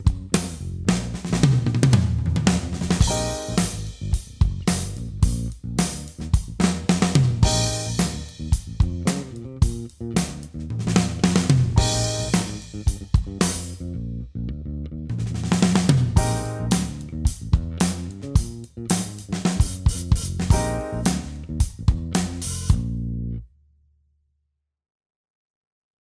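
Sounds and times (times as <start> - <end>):
pop drum fills: 0.0 - 13.8, 15.2 - 22.9.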